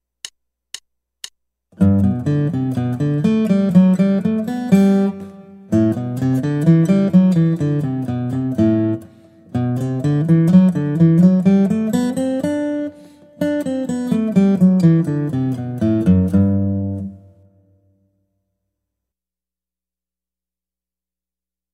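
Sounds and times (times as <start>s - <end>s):
guitar: 1.8s - 18.2s.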